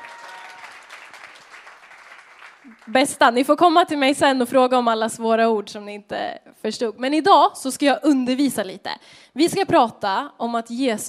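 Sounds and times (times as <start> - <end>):
audience applause: 0.0 - 2.9
speech: 2.6 - 11.0.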